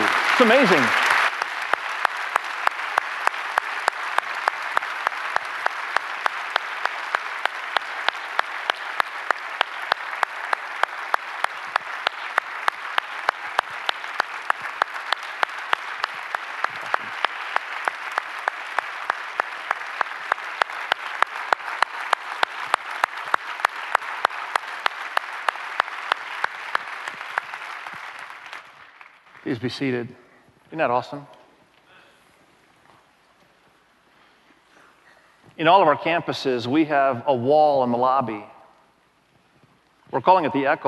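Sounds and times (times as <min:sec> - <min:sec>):
audience applause: 0:00.0 - 0:30.0
speech: 0:00.4 - 0:01.0, 0:29.5 - 0:31.4, 0:35.6 - 0:38.5, 0:40.2 - 0:40.8.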